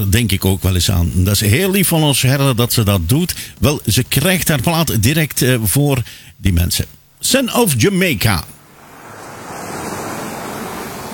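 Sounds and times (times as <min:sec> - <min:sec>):
speech: 0:00.0 - 0:08.6
sea waves surf: 0:08.6 - 0:11.1.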